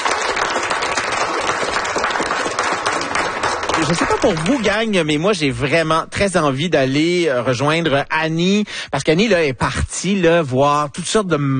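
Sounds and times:
audience applauding: 0.0s - 4.9s
speech: 3.8s - 11.5s.

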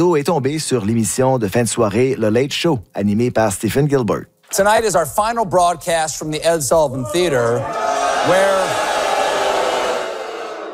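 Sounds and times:
speech: 0.0s - 8.9s
crowd booing: 6.9s - 10.7s.

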